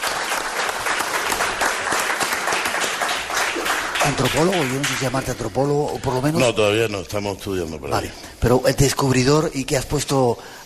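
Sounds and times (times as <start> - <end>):
audience applause: 0.0 - 5.4
speech: 4.0 - 10.6.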